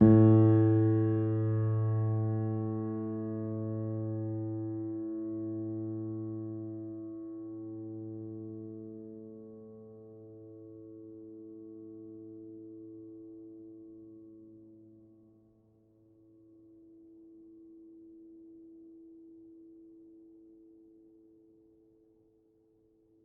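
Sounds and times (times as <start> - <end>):
upright piano sustained A1 note: 0.0 - 9.1.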